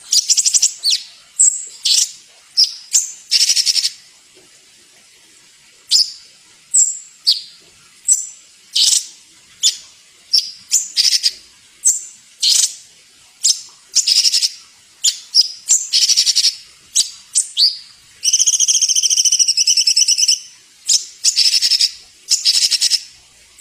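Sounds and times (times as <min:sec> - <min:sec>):
songbird masteran song with squeaky chattering and sharp chirps: 0:00.0 - 0:04.0, 0:08.1 - 0:12.8, 0:13.4 - 0:23.0.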